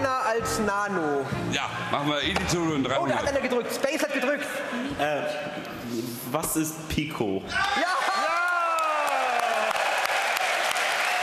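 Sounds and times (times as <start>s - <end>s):
speech: 0.5s - 8.0s
thunderous applause: 7.8s - 11.2s.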